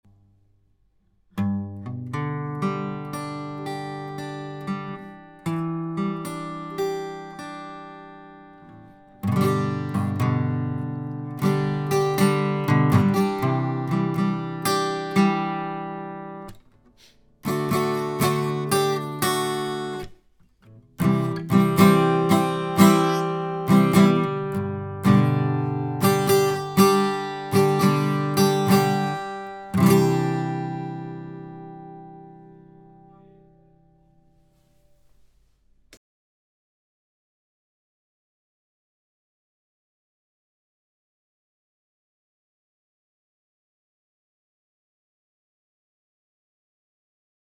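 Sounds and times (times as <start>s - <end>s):
guitar: 1.3s - 35.3s.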